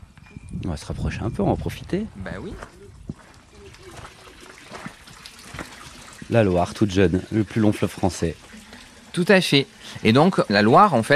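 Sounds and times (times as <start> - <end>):
speech: 0.7 - 2.8, 6.3 - 8.6, 9.2 - 11.1
water trickling at an old farm's water point on the Ardèche plateau: 3.0 - 11.1.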